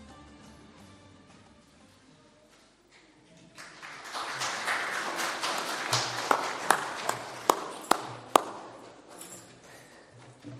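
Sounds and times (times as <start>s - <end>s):
audience applause: 3.6s - 8.8s.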